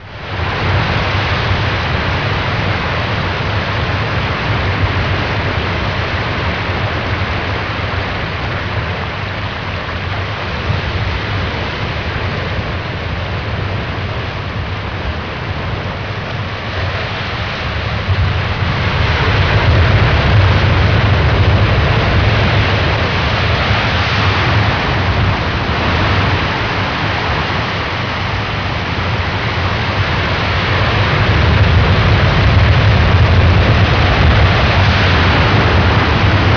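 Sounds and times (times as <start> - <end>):
ocean: 0.0 - 36.5.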